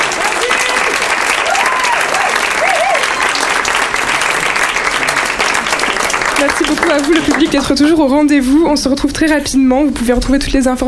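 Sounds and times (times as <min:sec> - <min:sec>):
audience applause: 0:00.0 - 0:08.0
speech: 0:06.6 - 0:10.8.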